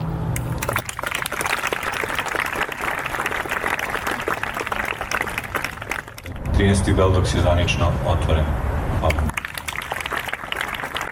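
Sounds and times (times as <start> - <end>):
applause opening the Beldocs festival in Belgrade: 0.6 - 6.4, 9.2 - 11.0
speech: 6.6 - 9.3.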